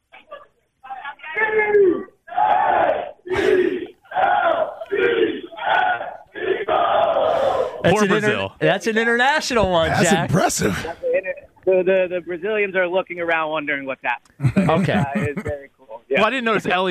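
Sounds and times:
crowd chanting a football cheer: 2.3s - 8.3s
speech: 7.8s - 11.0s, 11.7s - 16.8s
laughter: 14.4s - 15.7s.

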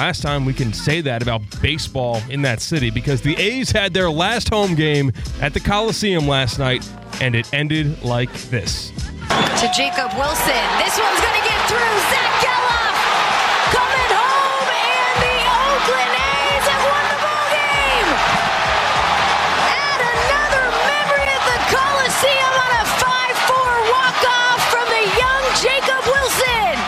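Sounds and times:
speech: 0.0s - 12.9s
stadium crowd cheering at baseball game: 9.3s - 26.8s.

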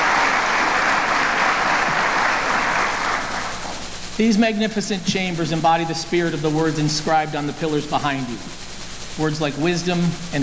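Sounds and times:
audience applause for the council members: 0.0s - 3.8s
speech: 4.2s - 8.6s, 9.2s - 10.4s.

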